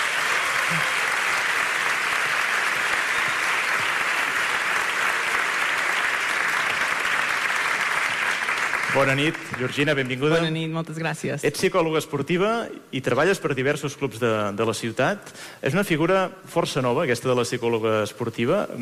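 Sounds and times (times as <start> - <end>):
audience applause: 0.0 - 10.6
speech: 9.0 - 18.8.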